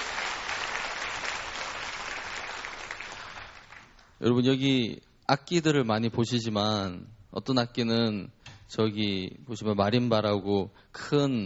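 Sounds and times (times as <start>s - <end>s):
audience applause for a choir: 0.0s - 4.1s
speech: 4.2s - 11.4s.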